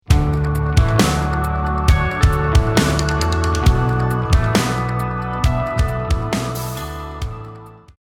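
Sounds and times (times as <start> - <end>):
lost round music: 0.1 - 7.9.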